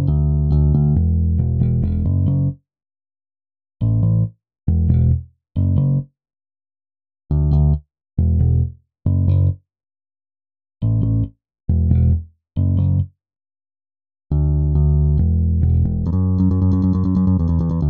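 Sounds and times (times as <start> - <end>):
bass: 0.0 - 2.6, 3.8 - 6.1, 7.3 - 9.6, 10.8 - 13.2, 14.3 - 17.8.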